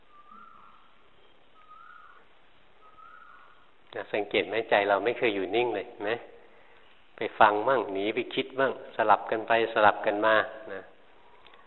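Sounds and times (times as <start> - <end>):
bird singing outdoors: 0.0 - 3.7
soft hiss: 0.0 - 11.6
speech: 4.0 - 6.3, 7.2 - 10.9.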